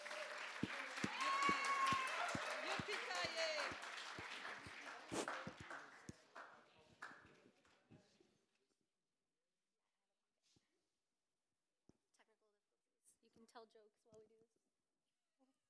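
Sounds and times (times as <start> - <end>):
audience clapping for a speaker: 0.0 - 8.2.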